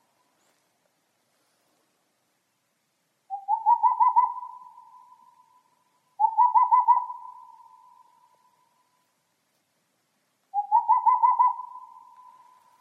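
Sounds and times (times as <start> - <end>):
boreal owl calling: 3.3 - 9.1, 10.5 - 12.8.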